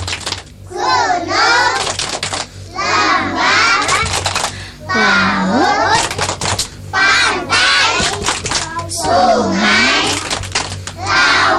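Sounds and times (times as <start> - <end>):
children clapping a rhythm: 0.0 - 11.5
group of young voices chanting: 0.7 - 2.0, 2.7 - 4.2, 4.9 - 6.1, 6.9 - 10.3, 11.0 - 11.5.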